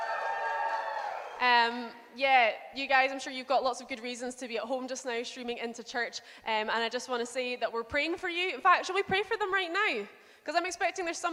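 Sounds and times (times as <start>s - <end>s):
audience cheering: 0.0s - 1.4s
speech: 1.4s - 11.3s.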